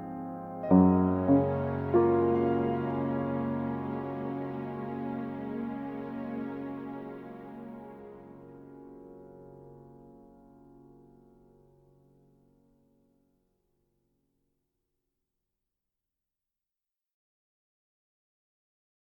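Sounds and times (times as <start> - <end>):
lyrical music: 0.0 - 10.0.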